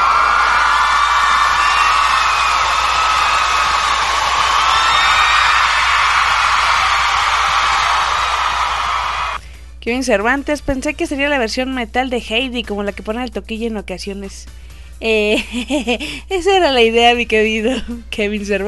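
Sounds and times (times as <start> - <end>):
crowd cheering and applauding: 0.0 - 9.4
high whoops and shouts from a crowd: 0.0 - 9.4
speech: 9.8 - 18.6.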